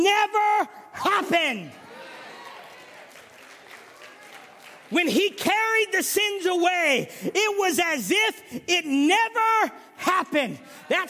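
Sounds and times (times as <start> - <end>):
speech: 0.0 - 1.8, 4.9 - 11.0
audience clapping: 1.8 - 5.5.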